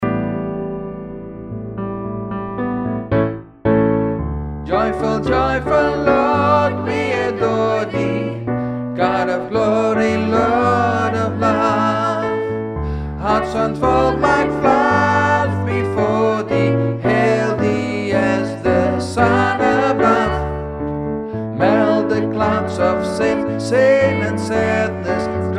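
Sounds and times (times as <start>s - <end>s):
joyful bass: 0.0s - 25.5s.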